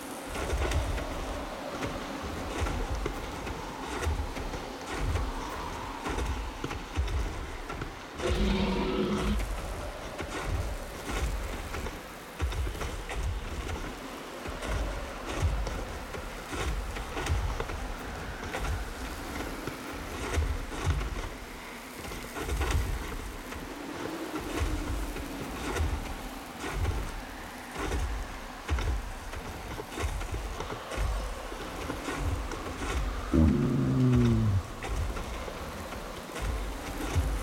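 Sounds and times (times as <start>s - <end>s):
desert ambience: 0.0s - 37.4s.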